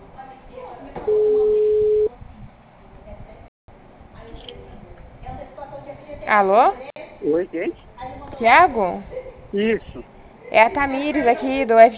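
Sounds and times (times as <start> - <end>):
telephone ringback tone during an outgoing call: 1.1 - 2.1
speech: 6.3 - 11.9.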